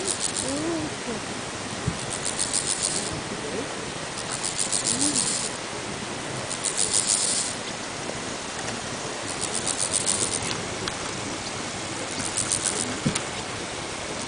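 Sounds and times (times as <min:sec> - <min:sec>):
bow-winged grasshopper song: 0:00.0 - 0:03.3, 0:04.1 - 0:05.7, 0:06.5 - 0:07.7, 0:09.2 - 0:10.6, 0:11.9 - 0:13.5
background hiss: 0:00.0 - 0:14.2.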